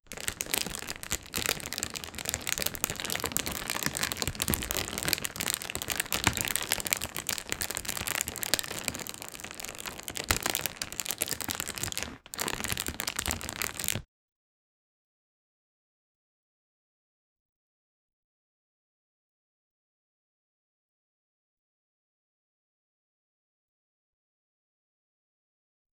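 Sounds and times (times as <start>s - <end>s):
firm sharp plastic rustle: 0.0s - 14.0s.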